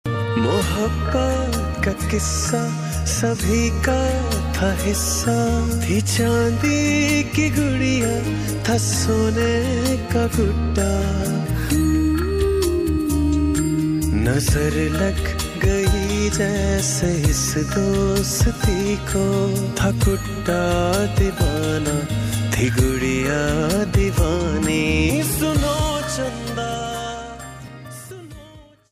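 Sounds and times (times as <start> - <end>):
Pakistani soundtrack ringtone music: 0.1 - 28.9.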